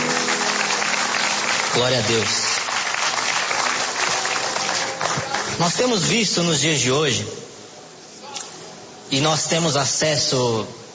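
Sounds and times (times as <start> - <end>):
church congregation clapping in praise: 0.0 - 6.1
speech: 1.8 - 2.5, 5.6 - 7.4, 9.1 - 10.8.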